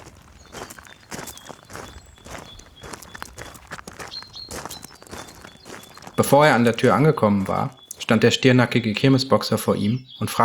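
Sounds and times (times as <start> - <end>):
footsteps walking: 0.0 - 8.2
speech: 6.2 - 10.4.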